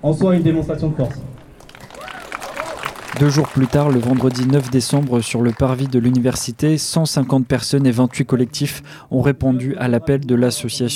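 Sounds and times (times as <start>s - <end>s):
speech: 0.0s - 1.4s, 3.1s - 10.9s
audience applauding: 1.5s - 8.4s.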